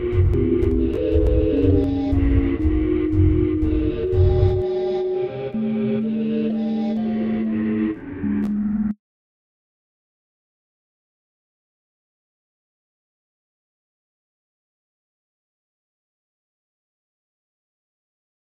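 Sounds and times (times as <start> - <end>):
sine wave tone: 0.0 - 9.0.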